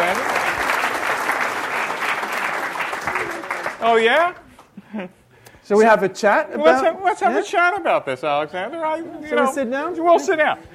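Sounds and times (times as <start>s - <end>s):
audience applause welcoming a surprise guest onstage: 0.0s - 4.4s
speech: 3.8s - 10.7s.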